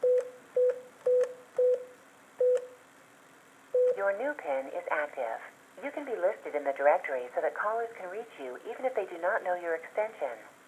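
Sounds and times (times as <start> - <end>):
telephone keypad tones entering a new PIN on an automated phone system: 0.0 - 2.8, 3.8 - 4.0
speech: 4.1 - 10.6.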